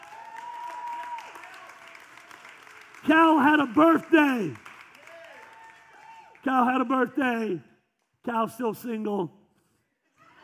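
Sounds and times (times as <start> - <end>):
audience clapping: 0.0 - 8.1
speech: 3.0 - 4.6, 6.5 - 9.4.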